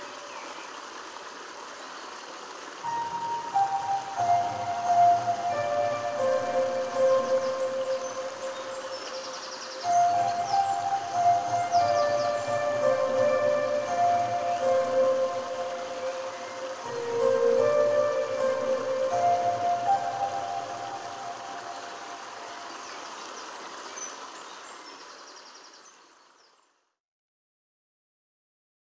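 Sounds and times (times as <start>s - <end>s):
spiritual music: 2.8s - 23.1s.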